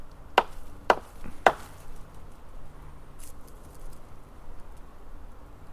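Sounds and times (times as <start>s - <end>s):
knocking: 0.4s - 1.7s.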